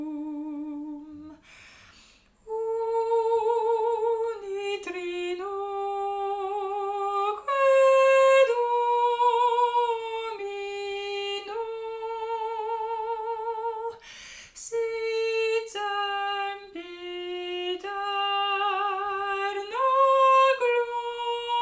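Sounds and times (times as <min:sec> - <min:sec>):
soprano singing a hymn: 0:00.0 - 0:21.5.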